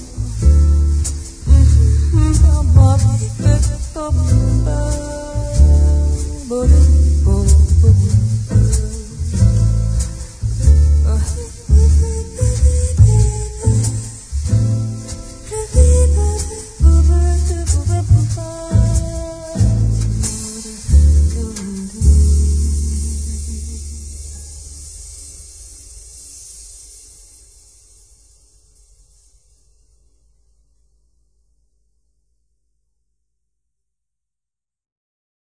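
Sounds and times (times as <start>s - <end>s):
smooth jazz: 0.0s - 26.9s.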